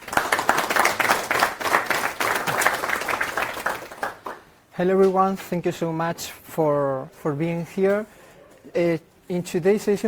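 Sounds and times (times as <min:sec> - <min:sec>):
audience applause: 0:00.0 - 0:04.4
speech: 0:04.8 - 0:10.0.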